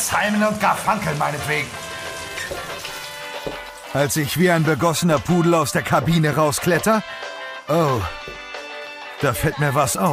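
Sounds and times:
shower water running: 0:00.0 - 0:05.7
speech: 0:00.1 - 0:01.8, 0:03.9 - 0:08.3, 0:09.2 - 0:10.1.

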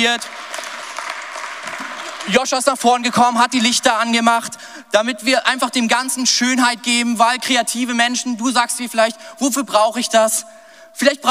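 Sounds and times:
speech: 0:00.0 - 0:00.4, 0:02.2 - 0:11.2
audience applause: 0:00.0 - 0:04.1.

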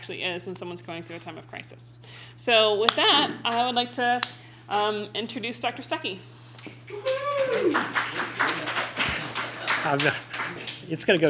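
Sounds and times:
speech: 0:00.0 - 0:08.1, 0:09.9 - 0:10.3, 0:10.9 - 0:11.2
audience clapping: 0:06.9 - 0:11.2.

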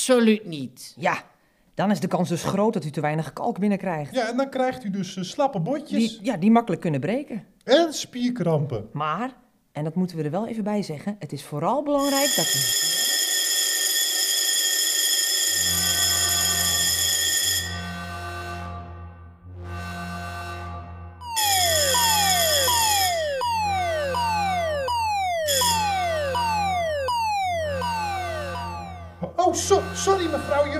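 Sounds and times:
speech: 0:00.0 - 0:13.0
fire brigade turnout alarm ringing: 0:12.0 - 0:18.6, 0:21.2 - 0:30.7
siren wailing: 0:21.2 - 0:30.5.

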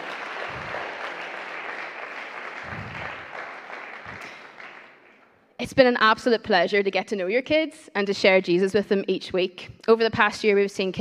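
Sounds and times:
audience applause: 0:00.0 - 0:05.2
speech: 0:05.6 - 0:11.0.

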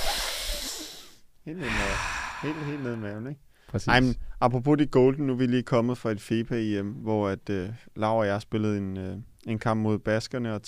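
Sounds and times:
deep breath exhaled into a microphone: 0:00.0 - 0:03.7
speech: 0:01.5 - 0:10.6.

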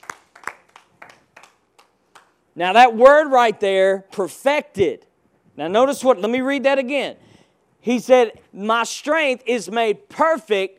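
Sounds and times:
audience hand clapping: 0:00.0 - 0:02.4
speech: 0:02.6 - 0:10.7.

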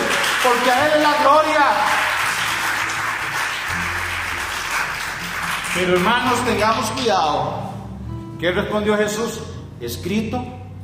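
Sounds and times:
audience clapping: 0:00.0 - 0:07.0
speech: 0:00.4 - 0:02.0, 0:05.8 - 0:07.7, 0:08.4 - 0:10.6.

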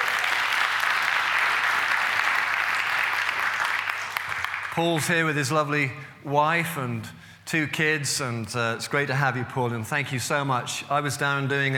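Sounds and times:
room full of people clapping: 0:00.0 - 0:05.1
speech: 0:04.8 - 0:11.7.

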